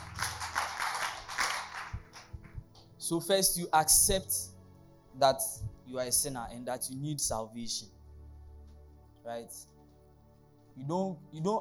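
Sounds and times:
audience clapping: 0:00.0 - 0:02.9
speech: 0:03.1 - 0:04.5, 0:05.2 - 0:08.0, 0:09.2 - 0:09.7, 0:10.8 - 0:11.5.

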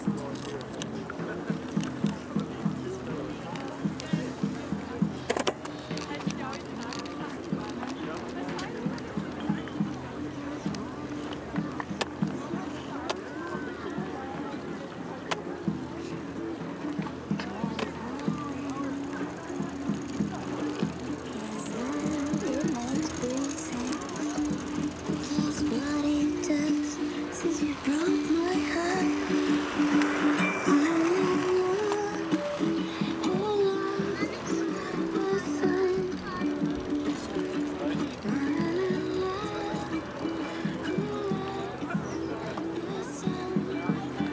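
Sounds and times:
crowd voices and chatter on the Tempelhofer Freiheit in Berlin: 0:00.0 - 0:44.3
faint whirring of passing wheels: 0:18.4 - 0:41.7.

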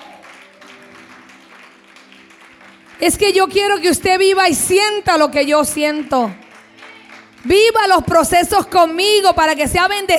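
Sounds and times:
audience applause: 0:00.0 - 0:03.8, 0:06.0 - 0:07.8
speech: 0:03.0 - 0:06.4, 0:07.4 - 0:10.1.

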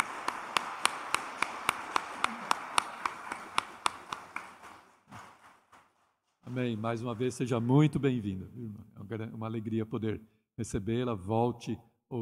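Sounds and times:
audience clapping in unison: 0:00.0 - 0:07.9
speech: 0:06.5 - 0:12.2.

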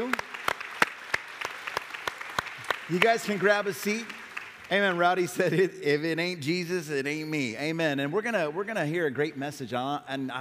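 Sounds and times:
audience applause: 0:00.0 - 0:05.5
speech: 0:02.9 - 0:10.3.

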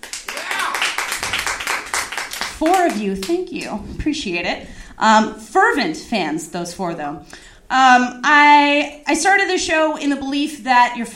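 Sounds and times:
audience clapping: 0:00.0 - 0:03.5
speech: 0:02.6 - 0:11.1.

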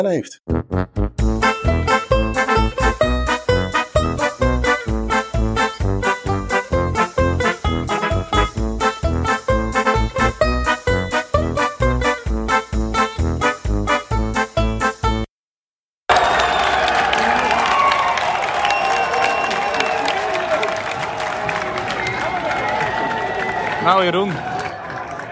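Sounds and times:
speech: 0:00.0 - 0:01.5, 0:24.0 - 0:24.4
punchy rhythmic beats: 0:00.4 - 0:15.3
crowd cheering and roaring in a beer garden: 0:16.1 - 0:25.2
people clapping: 0:16.1 - 0:25.2.

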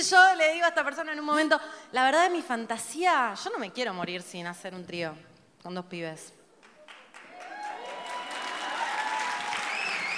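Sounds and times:
speech: 0:00.0 - 0:06.4
audience applause: 0:06.6 - 0:10.1.

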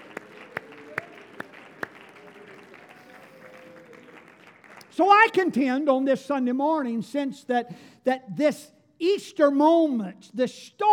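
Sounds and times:
audience clapping hands in a steady rhythm: 0:00.0 - 0:05.0
speech: 0:05.0 - 0:10.9.

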